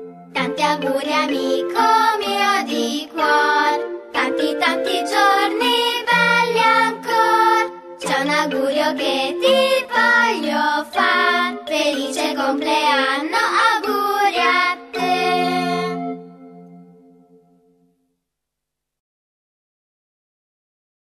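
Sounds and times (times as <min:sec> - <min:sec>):
birthday song sung in Italian: 0:00.4 - 0:16.4.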